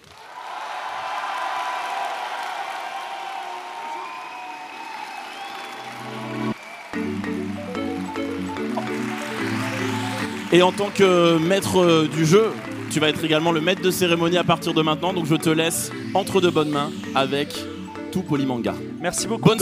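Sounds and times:
audience applause: 0.0s - 14.6s
speech: 10.5s - 19.6s.

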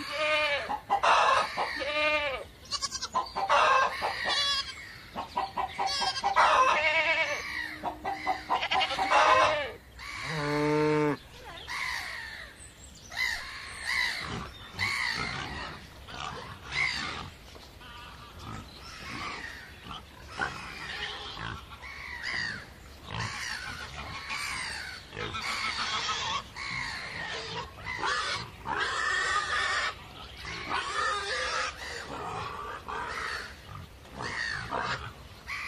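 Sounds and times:
farm pigs squealing and grunting: 0.0s - 11.2s, 13.9s - 35.6s
farm fowl clucking: 0.6s - 1.9s, 2.8s - 10.4s.

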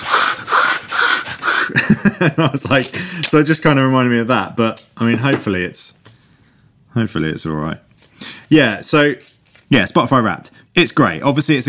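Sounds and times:
voice imitating sanding a wooden staircase: 0.0s - 1.8s
laughter: 1.5s - 3.0s
speech: 2.2s - 6.0s, 6.9s - 7.8s, 8.5s - 11.6s.

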